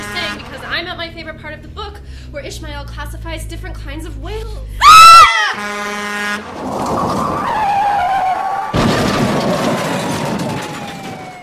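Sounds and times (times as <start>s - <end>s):
loud horn blaring: 0.0s - 1.4s, 4.8s - 6.7s
tires screeching: 0.0s - 11.3s
speech: 0.8s - 7.8s
truck crash: 6.4s - 11.4s.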